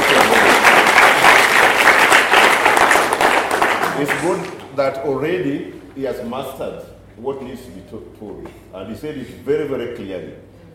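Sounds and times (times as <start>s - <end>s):
audience clapping: 0.0s - 4.7s
speech: 4.0s - 10.5s.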